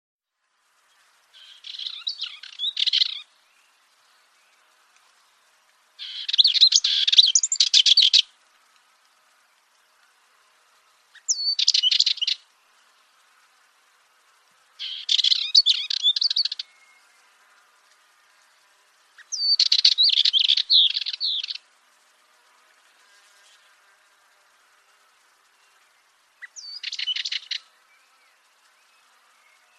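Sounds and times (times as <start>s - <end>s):
bird chirping song: 0.6s - 29.7s.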